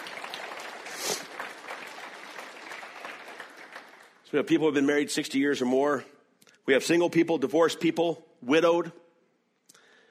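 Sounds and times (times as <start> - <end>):
audience clapping: 0.0 - 4.8
speech: 4.3 - 9.0.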